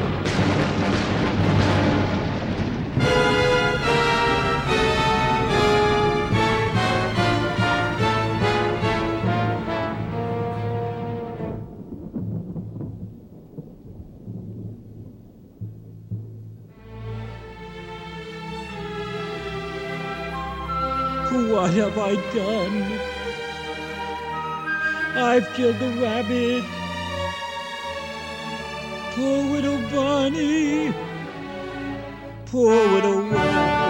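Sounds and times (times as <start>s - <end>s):
dramatic sweeping orchestral music: 0.0s - 12.4s, 16.3s - 33.8s
lightning strike and rumbling thunder: 0.0s - 16.8s
speech: 21.8s - 23.0s, 25.2s - 26.8s, 29.2s - 31.1s, 32.5s - 33.8s.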